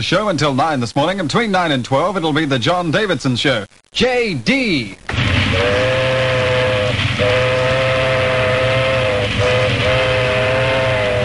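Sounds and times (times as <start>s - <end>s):
speech: 0.0s - 6.2s
steam train rumbling past: 5.1s - 11.2s.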